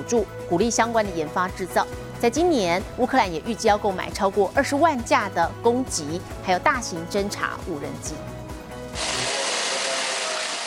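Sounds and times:
speech: 0.1 - 8.4
power tool grinding drone parts in a workshop: 9.0 - 10.6.

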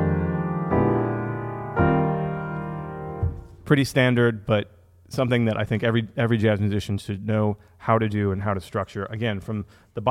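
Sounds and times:
piano playing an E-flat major 7 six-nine jazz chord voicing: 0.0 - 3.8
speech: 3.7 - 10.0.

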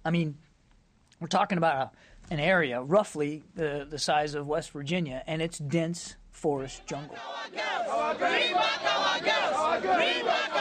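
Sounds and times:
speech: 0.0 - 0.4, 1.2 - 10.5
protesters chanting a slogan outside the Nigerian embassy in Belgium: 6.8 - 10.5.

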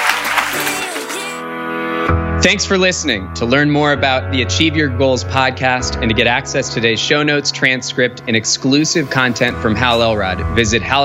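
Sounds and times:
audience applause: 0.0 - 1.4
speech: 2.4 - 11.0.

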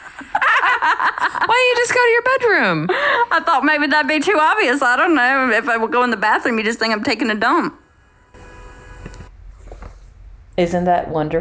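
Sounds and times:
laughter: 0.0 - 1.9
speech: 1.4 - 7.8, 10.6 - 11.3
car horn honking: 8.1 - 9.3.

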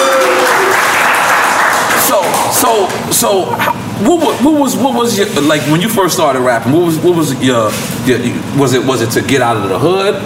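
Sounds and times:
audience applause at a hip-hop interview event: 0.0 - 3.6
speech: 2.7 - 10.2.

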